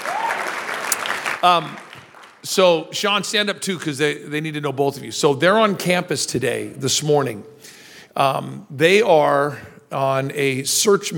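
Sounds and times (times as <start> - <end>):
audience clapping: 0.0 - 2.8
speech: 1.4 - 1.8, 2.4 - 7.6, 8.2 - 11.1.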